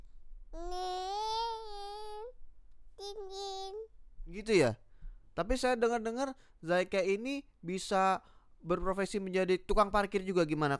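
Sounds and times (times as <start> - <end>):
young child imitating a car: 0.6 - 2.4, 3.0 - 3.9
speech: 4.3 - 4.8, 5.4 - 10.7.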